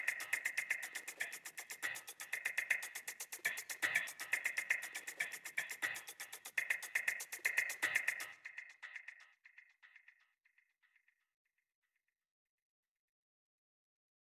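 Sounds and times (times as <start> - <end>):
synth percussion phrase: 0.0 - 9.3.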